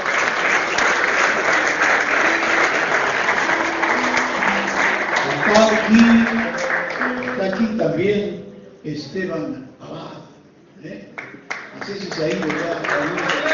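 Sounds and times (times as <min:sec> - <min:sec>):
crowd applause: 0:00.0 - 0:08.0, 0:11.2 - 0:13.5
speech: 0:08.8 - 0:10.2.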